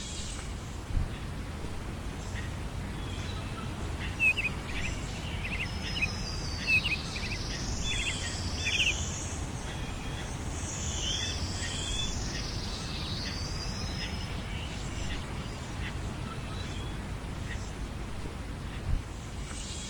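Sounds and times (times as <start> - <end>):
woods ambience: 0.0 - 19.8.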